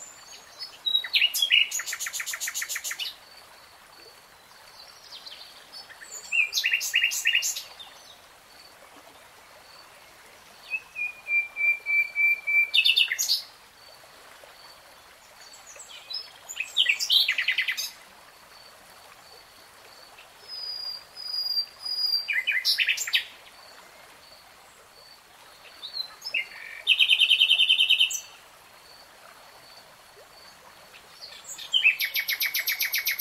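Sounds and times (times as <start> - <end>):
nightingale song: 0.0 - 3.2, 4.5 - 8.2, 10.6 - 13.5, 15.5 - 18.0, 20.2 - 23.4, 25.6 - 28.4, 30.9 - 33.2.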